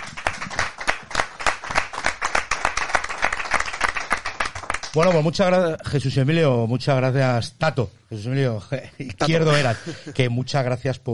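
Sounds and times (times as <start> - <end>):
applause: 0.0 - 5.4
speech: 5.0 - 11.1
laughter: 9.0 - 10.4.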